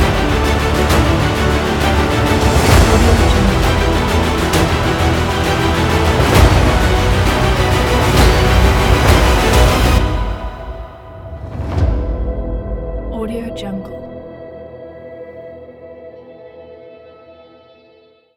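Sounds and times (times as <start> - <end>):
epic trailer music: 0.0 - 14.6.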